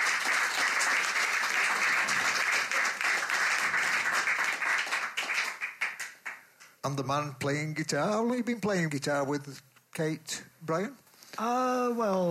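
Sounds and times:
crowd applauding: 0:00.0 - 0:06.5
speech: 0:06.8 - 0:12.3.

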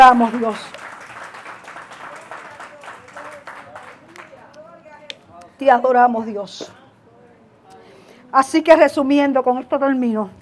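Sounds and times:
speech: 0:00.0 - 0:00.8, 0:05.6 - 0:06.8, 0:08.3 - 0:10.4
audience applause: 0:00.0 - 0:04.5.

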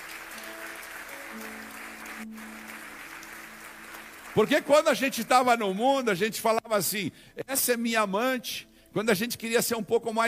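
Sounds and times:
audience applause: 0:00.0 - 0:05.7
speech: 0:04.4 - 0:10.2.

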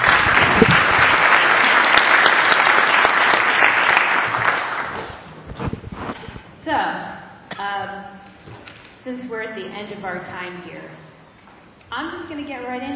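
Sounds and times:
audience applause: 0:00.0 - 0:05.3
speech: 0:09.2 - 0:11.0, 0:11.9 - 0:12.9.

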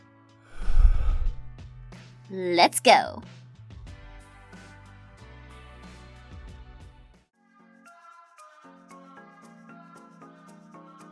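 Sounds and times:
deep breath in and out: 0:00.6 - 0:01.6
speech: 0:02.3 - 0:03.4.

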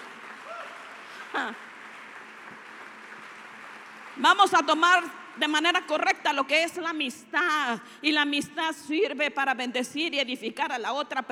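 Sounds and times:
audience applause: 0:00.0 - 0:05.4
speech: 0:01.3 - 0:01.7, 0:04.2 - 0:11.3.

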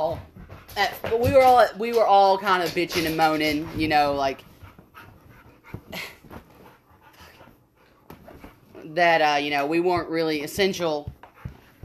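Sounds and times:
dog panting: 0:00.0 - 0:11.8
speech: 0:00.1 - 0:04.5, 0:05.9 - 0:06.2, 0:08.8 - 0:11.2.

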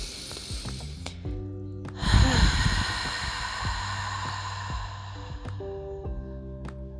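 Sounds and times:
breath out through the mouth in a guided breathing exercise: 0:00.0 - 0:01.3, 0:02.0 - 0:05.9.

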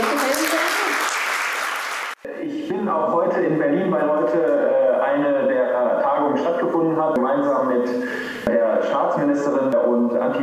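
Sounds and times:
crowd applause: 0:00.0 - 0:02.2
speech: 0:02.8 - 0:08.3, 0:09.0 - 0:10.4.

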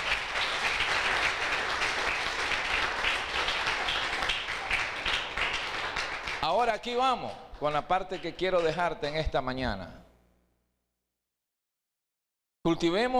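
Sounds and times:
audience applause: 0:00.0 - 0:06.6
speech: 0:06.6 - 0:10.0, 0:12.6 - 0:13.1.

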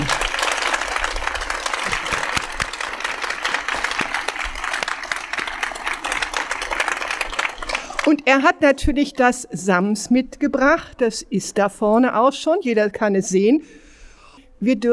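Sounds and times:
audience applause: 0:00.0 - 0:08.2
speech: 0:08.1 - 0:13.8, 0:14.6 - 0:14.9.

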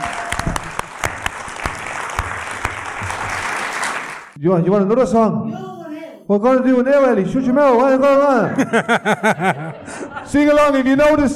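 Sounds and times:
audience applause: 0:00.0 - 0:04.4
speech: 0:04.4 - 0:05.7, 0:06.3 - 0:11.3
laughter: 0:08.6 - 0:10.4.

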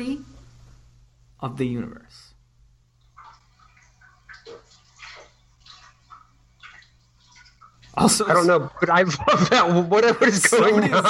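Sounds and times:
speech: 0:00.0 - 0:00.3, 0:01.4 - 0:02.3, 0:08.0 - 0:11.0
berries being washed under running water: 0:03.0 - 0:09.5
laughter: 0:08.0 - 0:11.0.

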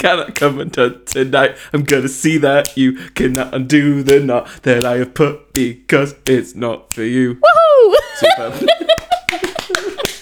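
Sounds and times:
speech: 0:00.0 - 0:09.8
laughter: 0:07.8 - 0:10.1
crowd clapping: 0:09.0 - 0:10.1.

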